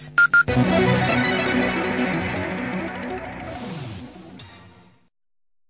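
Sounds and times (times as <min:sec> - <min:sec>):
radio interval signal: 0:00.2 - 0:04.6.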